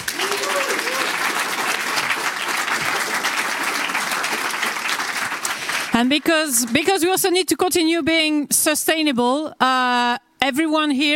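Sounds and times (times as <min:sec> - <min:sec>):
audience applause for the sponsors: 0:00.0 - 0:06.8
speech: 0:06.0 - 0:11.1.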